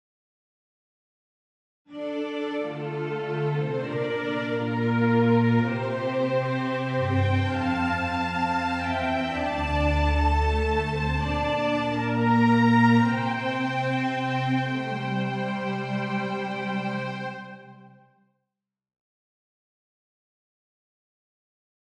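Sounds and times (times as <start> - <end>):
strings: 1.9 - 18.0.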